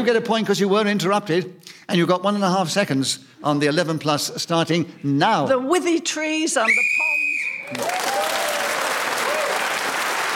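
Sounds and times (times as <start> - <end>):
speech: 0.0 - 8.5
whistle marking end of time: 6.6 - 7.8
loud steady applause: 7.6 - 10.3.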